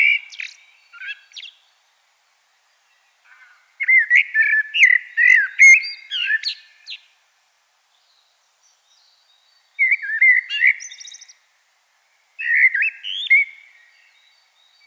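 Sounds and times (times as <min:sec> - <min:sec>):
Common blackbird singing: 0:00.0 - 0:01.6, 0:03.8 - 0:07.1, 0:08.8 - 0:11.4, 0:12.4 - 0:14.8.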